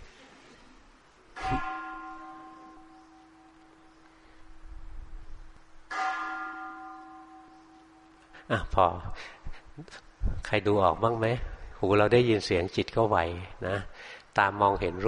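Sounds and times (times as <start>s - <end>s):
temple bell being struck: 1.4s - 4.7s, 5.9s - 9.1s
speech: 8.5s - 15.0s.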